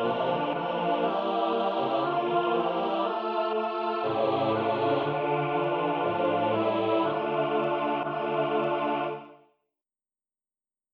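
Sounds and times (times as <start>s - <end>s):
all voices singing a canon: 0.0s - 9.4s.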